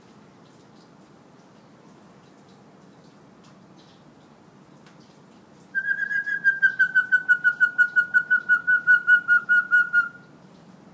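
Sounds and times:
hill myna whistling trill: 5.8 - 10.2.

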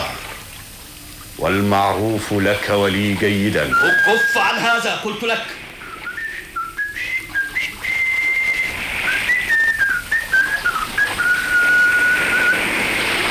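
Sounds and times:
speech: 1.4 - 5.6
loud whistling of a marching tune: 3.7 - 4.8, 5.8 - 13.1.

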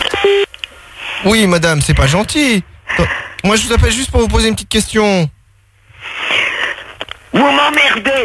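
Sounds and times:
phone keypad tones: 0.1 - 0.5
speech: 1.3 - 5.4, 7.3 - 8.2.

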